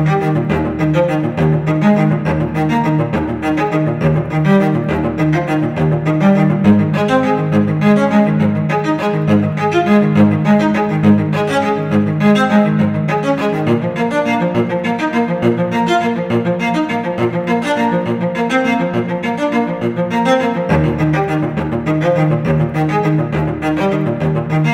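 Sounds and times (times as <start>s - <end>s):
classical cello solo: 0.0s - 24.7s.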